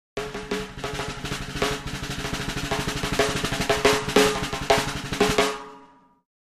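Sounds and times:
comedy snare drum accent: 0.2 - 5.9.

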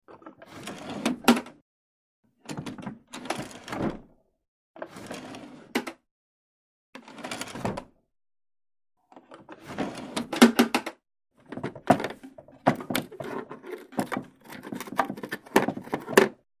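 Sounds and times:
dresser drawer: 0.1 - 1.6, 2.5 - 4.1, 4.8 - 6.0, 7.0 - 7.9, 9.1 - 16.4.

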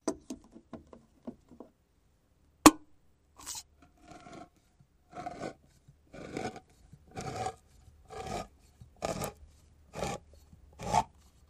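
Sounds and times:
manual can opener operating: 3.4 - 11.4.

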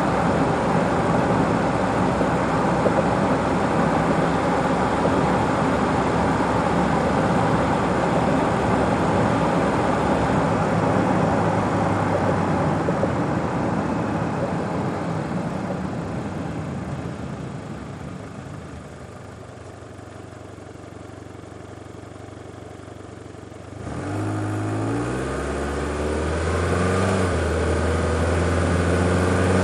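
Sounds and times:
sedan accelerating to 60 mph: 0.0 - 16.4, 23.7 - 29.6.

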